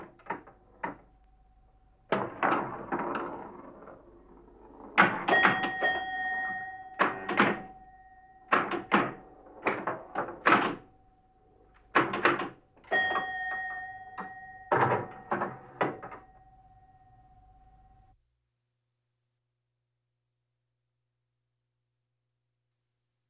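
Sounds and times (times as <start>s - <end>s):
pinball machine: 0.0s - 17.2s.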